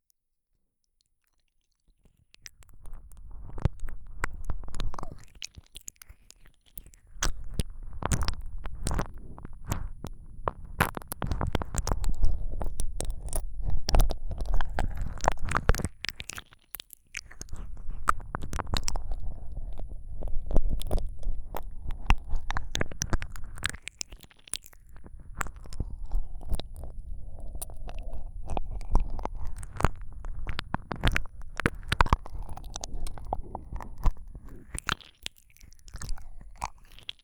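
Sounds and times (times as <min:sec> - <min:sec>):
slow ASMR ear licking: 0:02.6 - 0:37.2.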